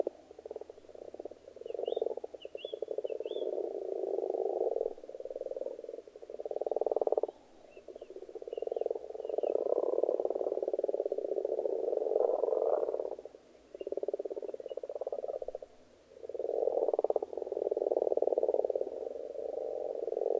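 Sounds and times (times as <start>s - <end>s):
frogs croaking chorus: 0.0s - 20.3s
faint bird chirps: 0.9s - 3.6s, 6.5s - 9.9s, 13.7s - 15.0s.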